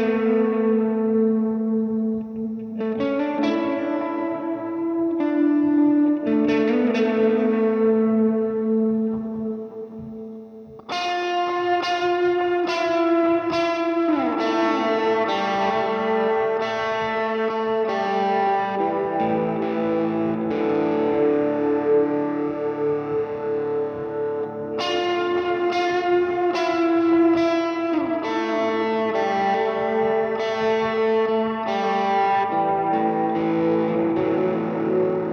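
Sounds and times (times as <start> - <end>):
guitar recorded mono with an SM57 microphone: 0.0 - 35.3.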